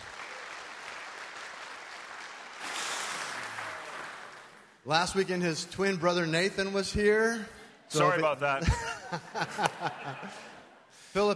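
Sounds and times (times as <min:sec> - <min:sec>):
church congregation applauding to welcome a visiting missionary: 0:00.0 - 0:04.9
speech: 0:04.8 - 0:11.3
laughter: 0:08.6 - 0:10.9.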